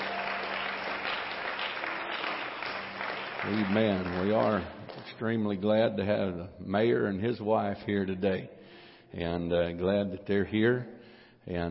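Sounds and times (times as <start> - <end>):
audience applause: 0.0 - 5.1
speech: 3.4 - 11.6.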